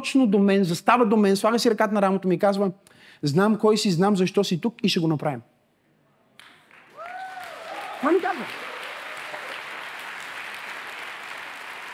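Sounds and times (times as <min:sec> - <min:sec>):
speech: 0:00.0 - 0:05.5, 0:08.0 - 0:08.6
audience applause: 0:06.4 - 0:11.9.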